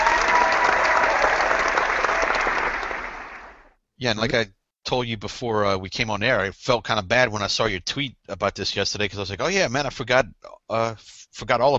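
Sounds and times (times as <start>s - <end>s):
audience applause: 0.0s - 3.7s
speech: 4.0s - 11.7s.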